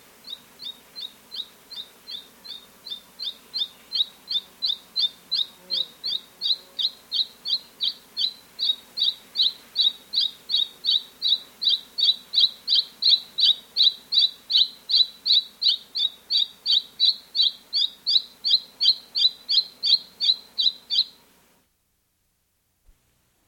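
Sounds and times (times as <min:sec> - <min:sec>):
mountain robin in South America: 0:00.0 - 0:21.2.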